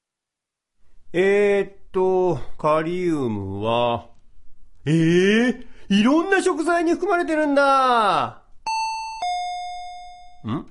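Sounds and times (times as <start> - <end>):
speech: 1.1 - 4.1, 4.8 - 8.4, 10.4 - 10.7
doorbell ringing: 8.7 - 10.5.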